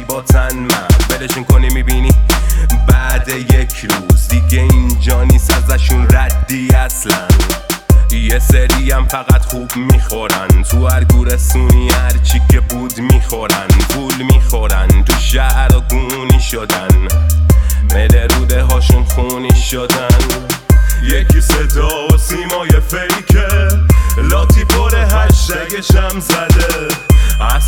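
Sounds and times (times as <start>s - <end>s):
trap music: 0.0s - 27.6s.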